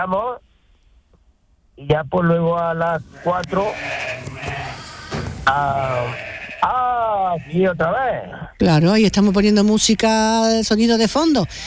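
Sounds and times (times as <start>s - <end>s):
speech: 0.0s - 0.5s, 1.8s - 4.3s, 5.5s - 11.6s
sheep loose in a fenced enclosure bleating: 3.1s - 8.0s.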